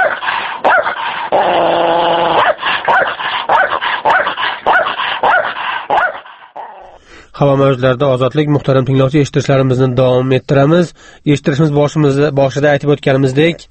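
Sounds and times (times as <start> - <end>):
stray dogs barking and yipping: 0.0 - 6.9
speech: 7.4 - 13.6.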